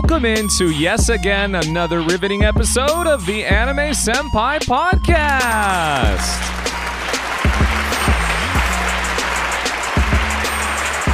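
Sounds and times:
speech: 0:00.1 - 0:06.8
warm applause: 0:05.4 - 0:11.1.

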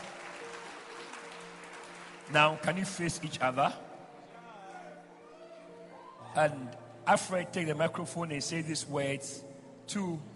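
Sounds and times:
wedding guests clapping: 0:00.0 - 0:03.7
speech: 0:02.3 - 0:03.9, 0:06.4 - 0:10.3.

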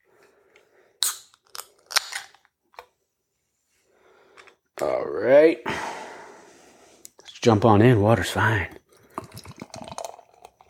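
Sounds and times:
can being cracked open: 0:01.0 - 0:02.5
speech: 0:05.1 - 0:05.8, 0:07.4 - 0:08.8.

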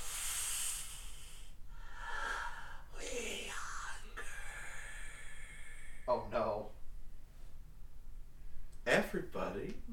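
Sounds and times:
soft hissing: 0:00.0 - 0:06.6
speech: 0:08.9 - 0:09.9.

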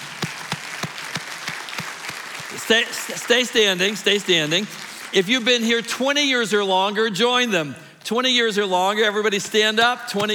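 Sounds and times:
large group applauding: 0:00.0 - 0:05.9
speech: 0:02.5 - 0:10.3.

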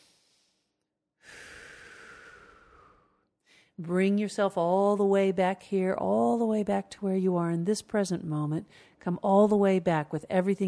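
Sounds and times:
breathing during a guided relaxation exercise: 0:00.0 - 0:03.8, 0:08.6 - 0:09.0
speech: 0:03.8 - 0:10.6.

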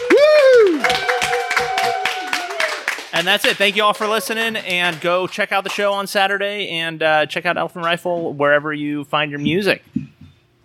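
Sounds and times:
live crowd cheering and whooping: 0:00.0 - 0:02.9
live crowd clapping: 0:00.0 - 0:06.2
speech: 0:03.2 - 0:10.0.

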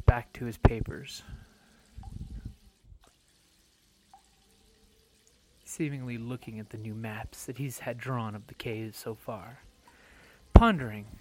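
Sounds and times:
speech: 0:00.1 - 0:01.5, 0:05.7 - 0:09.7, 0:10.6 - 0:11.1
liquid dripping onto cave floor: 0:00.1 - 0:11.1.

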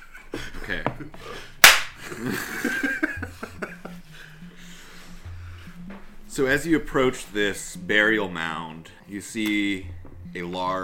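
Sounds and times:
laughter: 0:00.0 - 0:04.4
speech: 0:00.7 - 0:01.5, 0:02.1 - 0:02.8, 0:06.4 - 0:10.8
high five hand slap: 0:01.6 - 0:02.0.

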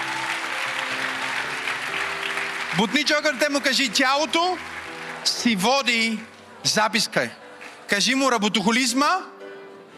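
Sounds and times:
audience applause during a talk: 0:00.0 - 0:06.2
speech: 0:02.8 - 0:09.4.

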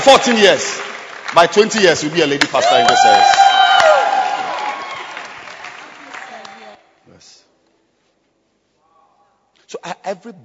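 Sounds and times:
speech: 0:00.0 - 0:03.5, 0:10.1 - 0:10.4
audience clapping and cheering: 0:00.0 - 0:06.8.

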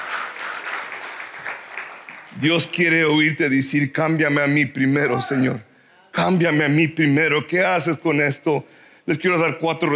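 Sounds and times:
audience applause: 0:00.0 - 0:02.4
speech: 0:02.4 - 0:09.9.

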